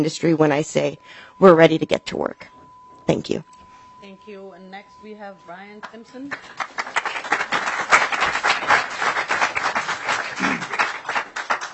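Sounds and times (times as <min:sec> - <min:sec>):
speech: 0:00.0 - 0:02.5, 0:03.1 - 0:07.0
audience applause in a committee hearing: 0:06.3 - 0:11.7.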